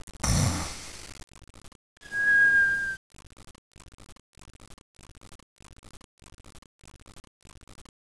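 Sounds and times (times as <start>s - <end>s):
person snoring: 0.2s - 1.1s.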